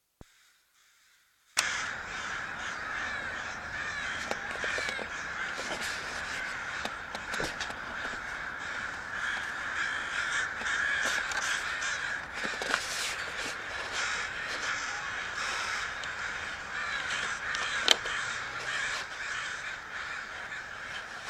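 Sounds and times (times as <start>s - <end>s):
crowd of crows cawing at sea: 0.3s - 21.2s.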